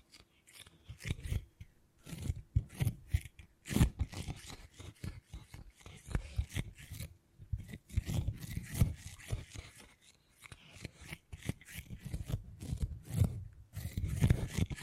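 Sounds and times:
beeswax handled with scraping and rubbing: 0.0 - 14.8.

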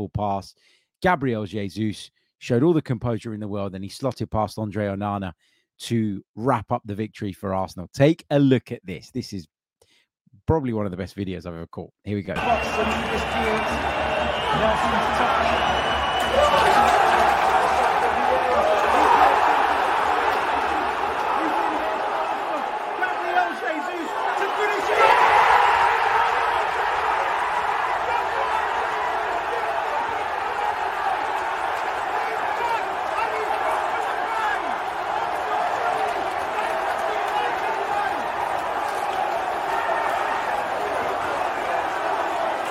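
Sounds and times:
speech: 0.0 - 9.6, 10.3 - 17.0
huge stadium crowd roaring and cheering a goal: 12.4 - 42.6.

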